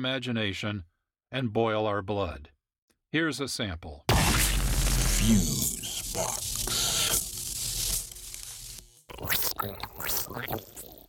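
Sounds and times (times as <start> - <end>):
speech: 0.0 - 4.1, 5.2 - 6.8, 9.2 - 10.8
squeezed catfish sounds: 4.1 - 11.0.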